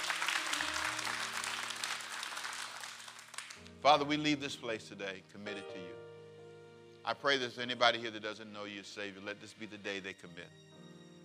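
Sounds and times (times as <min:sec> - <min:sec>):
audience applause: 0:00.0 - 0:03.7
speech: 0:03.8 - 0:06.0, 0:07.1 - 0:10.7.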